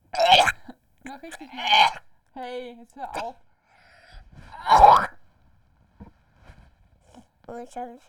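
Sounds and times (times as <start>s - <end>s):
speech: 0.1s - 3.5s, 7.5s - 8.0s
child coughing on request: 0.2s - 2.0s.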